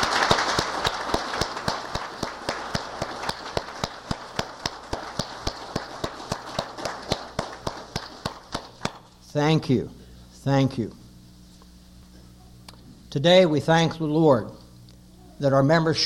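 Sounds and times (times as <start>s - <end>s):
audience applause: 0.0s - 9.0s
speech: 9.4s - 11.0s, 13.1s - 14.6s, 15.4s - 16.0s.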